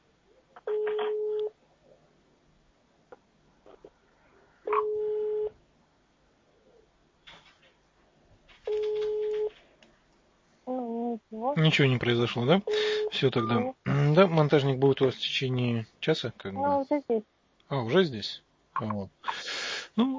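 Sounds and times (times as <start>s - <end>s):
telephone line tone: 0.7s - 1.5s, 4.7s - 5.6s, 8.7s - 9.5s, 12.7s - 13.7s
speech: 11.5s - 20.1s.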